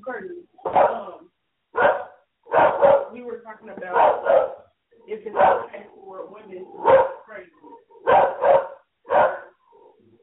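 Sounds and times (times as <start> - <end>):
dog barking: 0.6 - 1.1, 1.7 - 3.2, 3.9 - 4.7, 5.3 - 5.8, 6.7 - 9.6
speech: 3.5 - 4.5.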